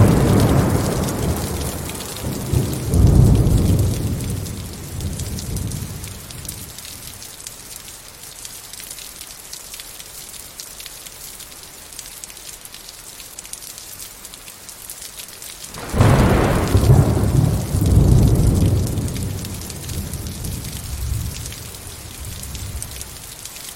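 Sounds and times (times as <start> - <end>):
deep rolling thunder: 0.0 - 6.7, 15.7 - 23.1
steady rain: 0.0 - 23.7.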